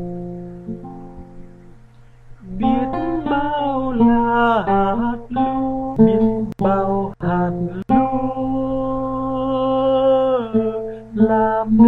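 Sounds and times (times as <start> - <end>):
bass voice singing: 2.4 - 11.8.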